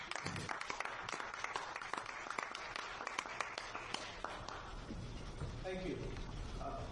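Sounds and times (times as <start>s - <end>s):
audience applause: 0.0s - 4.8s
speech: 5.7s - 6.8s.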